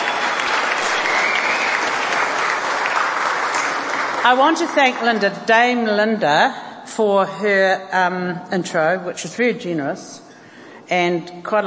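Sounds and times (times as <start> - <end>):
audience applause: 0.0 - 5.0
speech: 4.2 - 10.2, 10.9 - 11.6.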